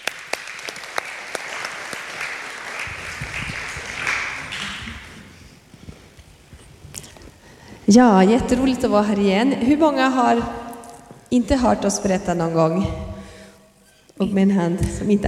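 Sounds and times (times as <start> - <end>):
applause: 0.0 - 5.3
speech: 7.9 - 10.6, 11.3 - 13.1, 14.2 - 15.2.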